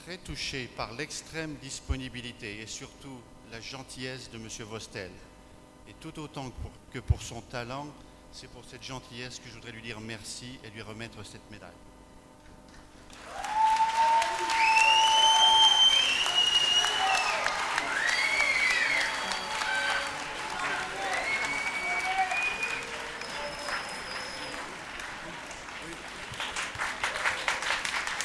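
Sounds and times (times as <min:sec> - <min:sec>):
speech: 0:00.0 - 0:05.3, 0:05.9 - 0:11.9
audience applause: 0:13.0 - 0:28.2.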